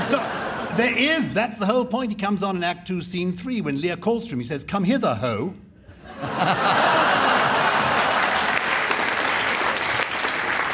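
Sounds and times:
scattered audience laughter: 0.0 - 1.0, 5.9 - 8.6
speech: 0.8 - 5.6, 6.2 - 7.0
audience applause: 6.8 - 10.7.

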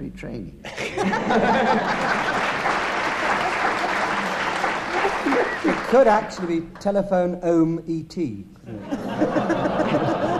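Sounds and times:
speech: 0.0 - 2.7, 5.2 - 10.1
laughter: 0.7 - 6.2, 8.7 - 10.3
audience applause: 1.3 - 6.6.

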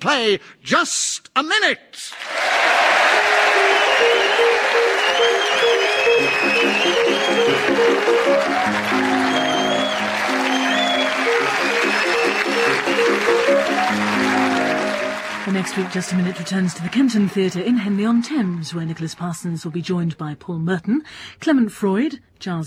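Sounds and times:
speech: 0.0 - 10.1, 15.4 - 22.6
audience clapping at Theatre Clwyd in Mold North Wales: 2.1 - 19.8
tuneful musical theme: 2.8 - 17.1.

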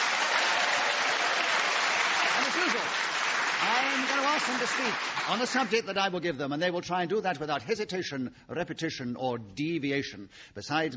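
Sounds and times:
studio audience applause on a comedy panel game: 0.0 - 5.9
speech: 4.2 - 10.9.

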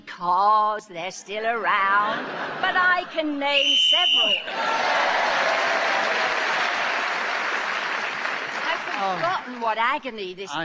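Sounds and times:
speech: 0.2 - 5.7, 9.0 - 10.6
audience laughter: 2.0 - 3.4
audience applause: 4.5 - 9.7.

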